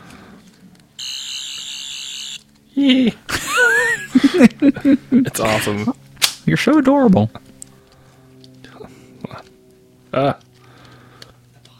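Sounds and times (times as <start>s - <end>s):
toy sonic screwdriver buzzing: 1.0s - 2.5s
speech: 2.8s - 3.4s, 4.1s - 7.4s, 10.1s - 10.4s
laughter: 2.8s - 6.0s.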